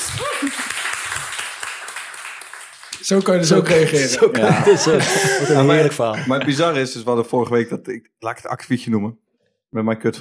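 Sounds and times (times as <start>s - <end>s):
applause: 0.0s - 4.2s
speech: 3.1s - 10.2s
laughter: 3.7s - 6.8s.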